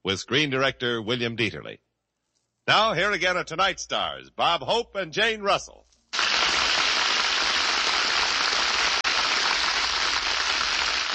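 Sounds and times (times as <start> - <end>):
speech: 0.0 - 1.9, 2.7 - 5.8
studio audience applause: 6.2 - 11.1.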